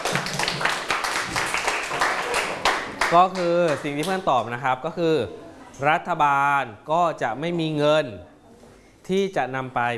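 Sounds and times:
students clapping for a classmate: 0:00.0 - 0:04.3
speech: 0:03.1 - 0:08.3, 0:09.1 - 0:09.9.

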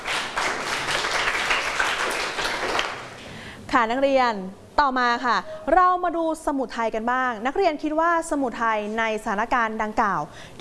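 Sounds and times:
students clapping for themselves: 0:00.0 - 0:03.2
speech: 0:03.7 - 0:10.5.

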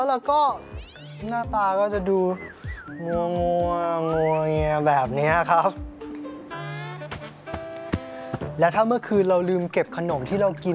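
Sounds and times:
speech: 0:00.0 - 0:06.0, 0:08.6 - 0:10.7
cat yowling in a fight: 0:00.6 - 0:01.5.

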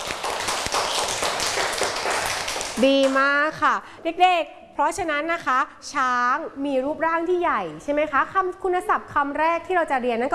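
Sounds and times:
children clapping: 0:00.0 - 0:03.2
speech: 0:02.8 - 0:10.3.

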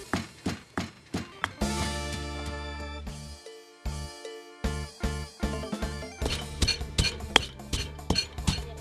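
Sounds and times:
tinkly music: 0:01.5 - 0:08.7
pestle pounding roasted coconut in a mortar: 0:06.2 - 0:08.7.

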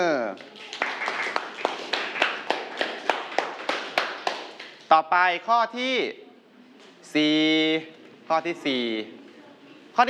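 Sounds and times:
students clapping in unison in a classroom: 0:00.3 - 0:04.9
speech: 0:04.9 - 0:06.2, 0:07.1 - 0:09.2.

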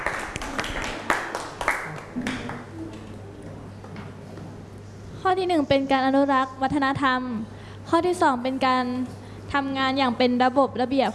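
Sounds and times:
students clapping hands: 0:00.0 - 0:02.7
speech: 0:05.3 - 0:11.1.

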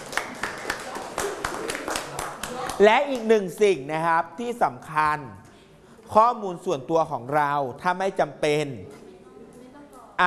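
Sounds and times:
scattered hand claps for a classmate during a lesson: 0:00.0 - 0:03.7
speech: 0:02.8 - 0:05.5, 0:06.1 - 0:09.0.

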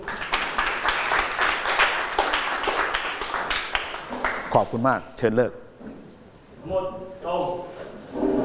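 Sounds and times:
students applauding: 0:00.0 - 0:04.6
speech: 0:04.6 - 0:05.6, 0:06.6 - 0:08.3.

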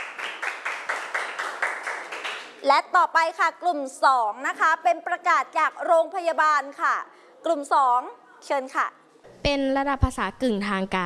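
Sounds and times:
Thai language class clapping in unison: 0:00.0 - 0:02.6
speech: 0:02.6 - 0:11.0.

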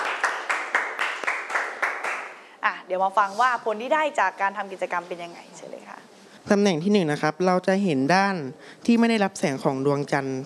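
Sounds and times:
classroom group applause: 0:00.0 - 0:02.4
speech: 0:02.9 - 0:10.4.

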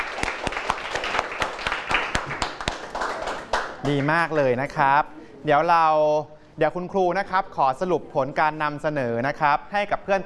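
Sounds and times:
students applauding: 0:00.0 - 0:04.3
speech: 0:03.9 - 0:10.2.

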